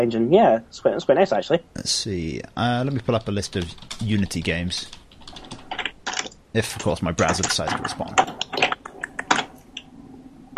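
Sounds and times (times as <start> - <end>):
speech: 0.0 - 5.0, 6.6 - 8.3
computer keyboard keystrokes: 2.8 - 9.8.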